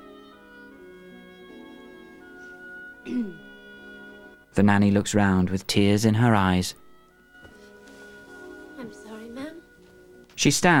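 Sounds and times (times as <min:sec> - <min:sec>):
speech: 0:03.0 - 0:03.5, 0:04.6 - 0:06.8, 0:10.4 - 0:10.7
woman's polite cough: 0:03.0 - 0:03.5.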